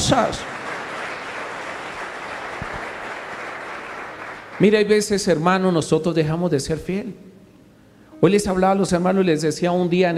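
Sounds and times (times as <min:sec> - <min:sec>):
large crowd applauding: 0:00.0 - 0:05.2
speech: 0:00.1 - 0:00.6, 0:04.6 - 0:07.2, 0:08.2 - 0:10.1.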